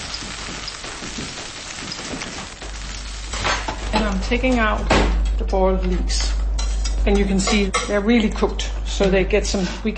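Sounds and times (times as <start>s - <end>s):
capers sizzling while frying: 0.0s - 5.4s, 6.5s - 7.9s
speech: 4.0s - 6.4s, 7.0s - 9.9s.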